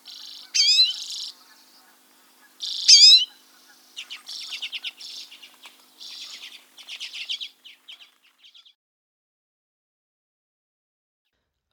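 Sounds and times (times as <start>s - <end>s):
Common Redpoll flock calls: 0.0s - 8.7s.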